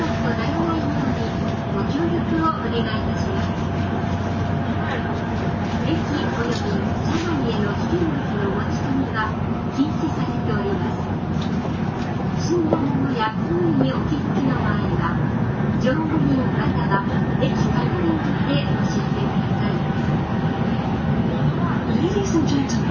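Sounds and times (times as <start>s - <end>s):
JR 700 series train running between Kyoto and Shin-Yokohama: 0.0s - 22.8s.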